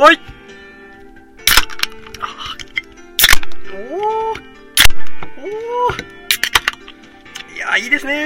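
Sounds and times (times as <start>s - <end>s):
speech: 0.0s - 0.3s, 7.8s - 8.2s
beer cans popping open: 1.4s - 3.7s, 4.3s - 5.3s, 5.9s - 7.5s.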